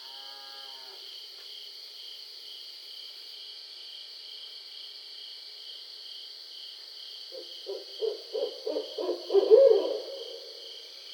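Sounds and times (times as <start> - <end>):
barred owl hooting: 7.4 - 10.7.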